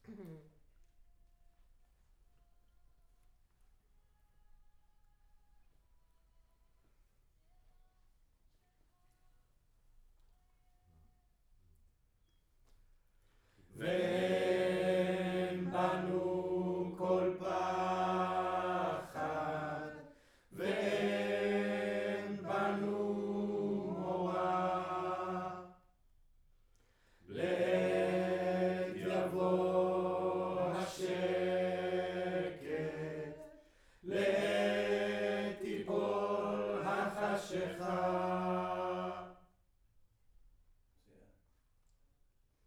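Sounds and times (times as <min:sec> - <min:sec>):
choir singing in room: 0:13.8 - 0:25.9, 0:27.3 - 0:39.5.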